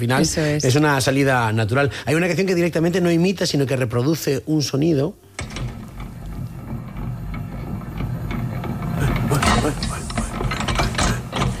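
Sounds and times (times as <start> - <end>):
speech: 0.0 - 5.6
mixer with rotating arms churning and rattling: 5.4 - 11.5.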